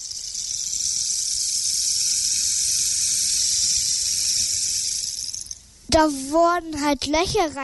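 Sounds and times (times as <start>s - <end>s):
rainstick turned slowly: 0.0s - 5.7s
speech: 5.9s - 7.6s.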